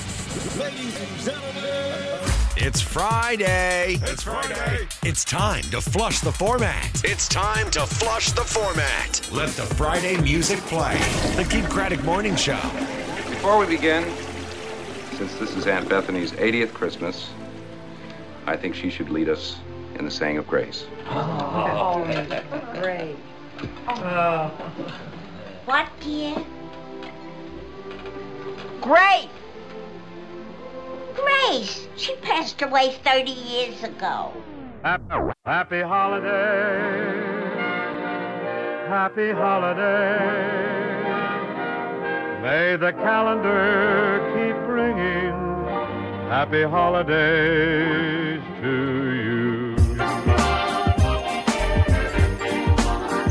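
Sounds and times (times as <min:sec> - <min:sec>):
Christmas music mix: 0:00.1 - 0:34.7, 0:35.8 - 0:53.2
laughter: 0:21.0 - 0:23.0.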